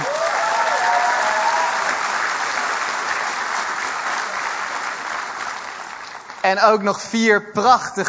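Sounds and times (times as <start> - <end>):
church audience applause: 0.0 - 6.5
speech: 6.4 - 8.0.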